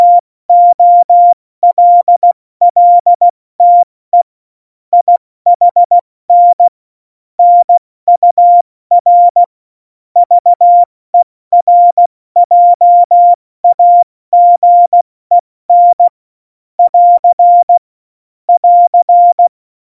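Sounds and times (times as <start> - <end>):
CW Morse code at tempo 70: 0.0 - 4.3, 5.0 - 6.7, 7.4 - 9.5, 10.2 - 10.9, 11.5 - 16.2, 16.8 - 17.8, 18.6 - 19.5.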